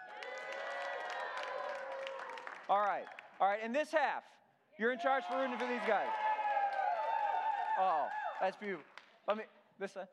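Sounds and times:
audience cheering: 0.0s - 3.2s, 4.9s - 8.8s
speech: 2.7s - 6.3s, 7.8s - 10.1s.

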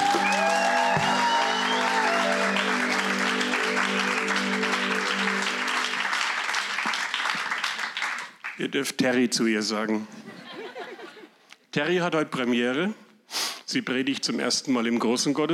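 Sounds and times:
audience applause: 0.0s - 8.6s
speech: 8.6s - 10.2s, 11.7s - 13.0s, 13.7s - 15.5s
laughter: 10.2s - 11.4s.

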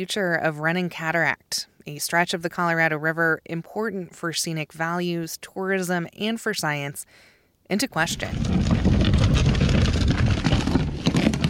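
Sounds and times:
speech: 0.0s - 9.8s
boat hauled up a steep slope beside Cataract on the Colorado River: 8.1s - 11.4s
scraping and rattling of a hauled boat: 8.1s - 11.4s.

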